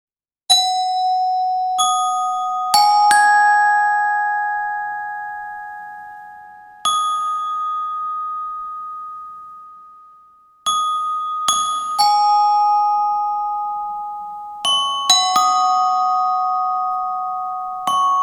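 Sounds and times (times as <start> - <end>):
glockenspiel: 0.5 - 18.2.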